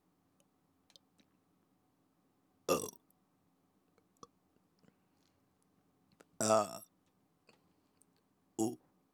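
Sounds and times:
person burping: 2.7 - 3.0, 6.4 - 6.8, 8.6 - 8.8.

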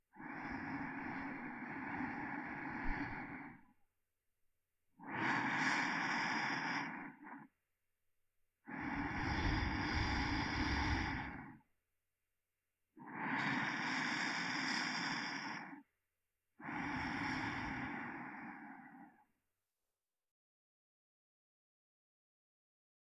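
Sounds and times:
sleeping breath: 0.1 - 3.8, 5.0 - 7.6, 8.7 - 11.7, 13.0 - 15.9, 16.6 - 19.3.

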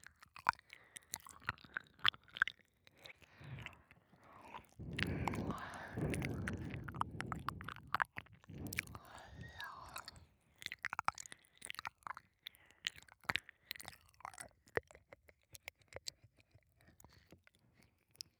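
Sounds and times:
ear licking sounds: 0.4 - 17.3
breath blowing: 3.3 - 10.3.

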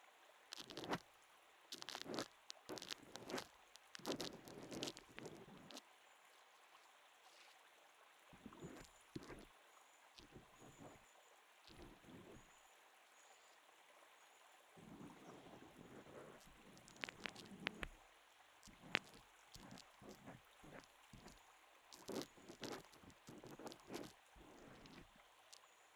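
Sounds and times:
foam bubbles popping under a cotton swab: 0.5 - 1.0, 1.7 - 5.8, 8.4 - 9.5, 11.7 - 12.4, 14.8 - 18.0, 18.6 - 21.4, 22.0 - 25.1.

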